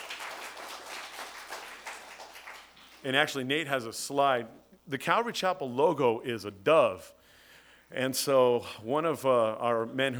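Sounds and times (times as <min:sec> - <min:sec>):
audience applause: 0:00.0 - 0:03.3
speech: 0:03.0 - 0:07.2, 0:07.9 - 0:10.1.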